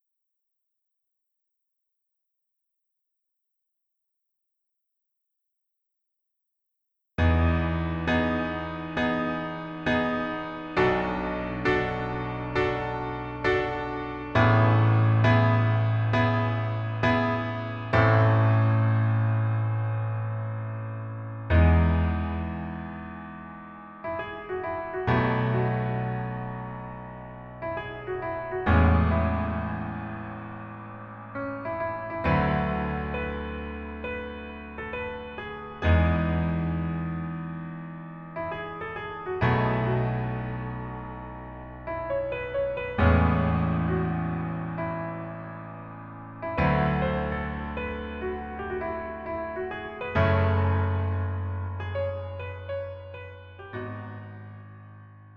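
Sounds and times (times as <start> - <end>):
piano version melody backing track: 7.2 - 55.3.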